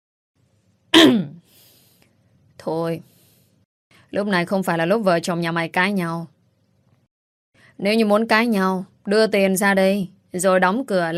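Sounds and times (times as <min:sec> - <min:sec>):
woman clearing her throat: 0:01.0 - 0:01.4
speech: 0:02.6 - 0:03.1, 0:04.1 - 0:06.4, 0:07.8 - 0:11.1.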